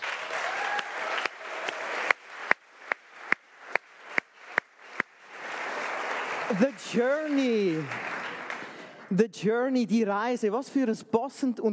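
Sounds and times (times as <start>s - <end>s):
audience applause: 0.0s - 9.1s
loud rhythmic clapping in unison: 0.0s - 9.2s
speech: 6.5s - 8.1s, 9.1s - 11.7s.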